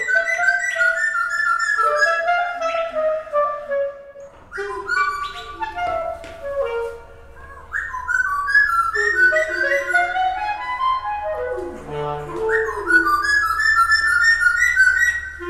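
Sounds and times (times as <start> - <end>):
bird chirping and trilling: 0.0 - 2.9, 4.5 - 6.1, 7.3 - 11.0, 12.0 - 15.4
clarinet sustained gliding tones: 0.0 - 15.4.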